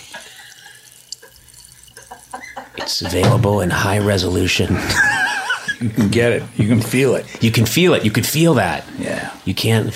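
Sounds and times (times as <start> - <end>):
sparkling water poured into a glass: 0.0 - 2.8
speech: 2.9 - 5.2, 5.8 - 9.9
laughter: 4.6 - 6.0.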